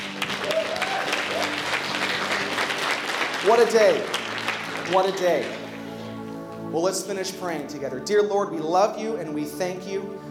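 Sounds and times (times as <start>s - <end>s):
audience applause: 0.0s - 5.9s
speech: 3.4s - 4.2s, 4.9s - 5.6s, 6.7s - 10.2s.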